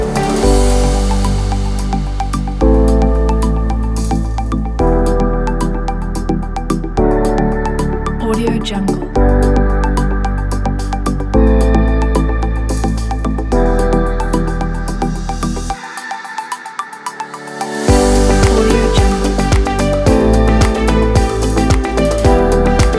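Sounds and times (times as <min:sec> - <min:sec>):
motivational corporate music: 0:00.0 - 0:22.9.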